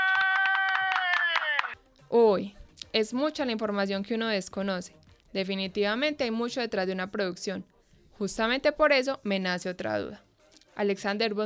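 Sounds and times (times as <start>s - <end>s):
applause: 0.0s - 1.8s
speech: 2.1s - 10.2s, 10.8s - 11.4s.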